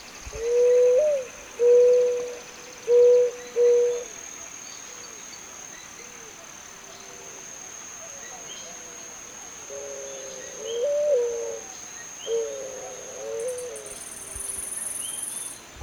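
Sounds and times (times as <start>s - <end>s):
Zenaida dove giving low even coos: 0.3s - 4.2s, 7.0s - 14.4s.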